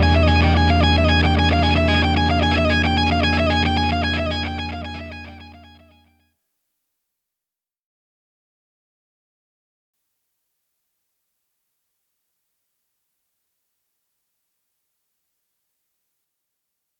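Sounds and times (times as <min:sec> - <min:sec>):
super locrian scale: 0:00.0 - 0:05.7.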